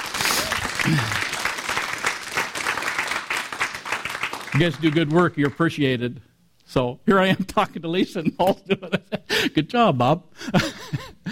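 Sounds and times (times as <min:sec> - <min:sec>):
audience applause: 0:00.0 - 0:05.6
speech: 0:00.8 - 0:01.2, 0:04.6 - 0:11.1.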